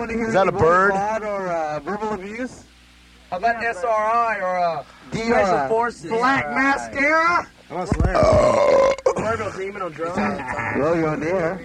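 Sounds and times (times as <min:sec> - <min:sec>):
speech: 0:00.0 - 0:02.7, 0:03.3 - 0:11.6
loud burp: 0:08.1 - 0:09.6.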